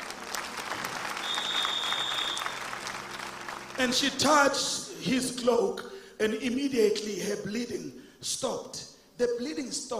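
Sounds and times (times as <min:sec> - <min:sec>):
audience applause: 0:00.0 - 0:04.1
speech: 0:03.8 - 0:09.9.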